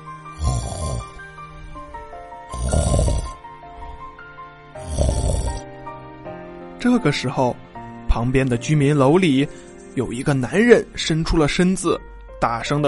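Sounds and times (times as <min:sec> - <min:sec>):
snoring: 0:00.3 - 0:01.2, 0:02.5 - 0:04.0, 0:04.8 - 0:05.6
speech: 0:06.8 - 0:12.8.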